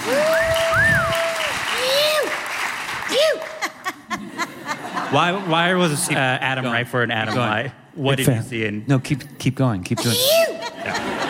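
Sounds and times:
audience cheering: 0.0 - 3.8
laughter: 3.1 - 11.2
speech: 5.1 - 10.3.

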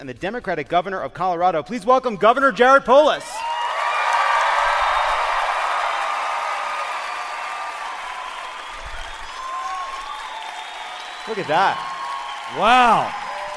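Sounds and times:
speech: 0.0 - 3.4, 11.3 - 11.9, 12.5 - 13.2
studio audience in Denver, Colorado, clapping in a standing ovation: 3.4 - 13.5.

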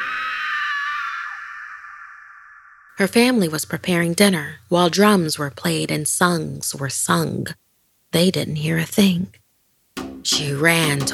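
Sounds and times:
woman's high-pitched scream: 0.0 - 3.0
speech: 3.0 - 9.4, 10.2 - 11.1.

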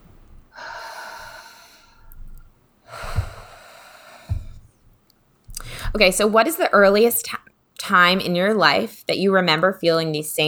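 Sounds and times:
person taking a deep breath: 0.0 - 4.8, 5.5 - 6.1
speech: 5.9 - 10.4.

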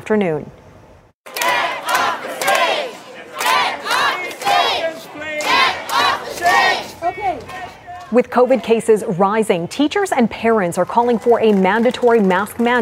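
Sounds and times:
speech: 0.1 - 0.6, 8.1 - 12.8
crowd shouting down protesters at rally: 1.3 - 8.8.

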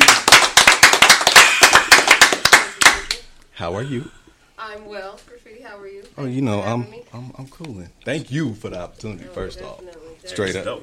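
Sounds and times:
audience clapping: 0.0 - 3.3
speech: 3.6 - 10.8.

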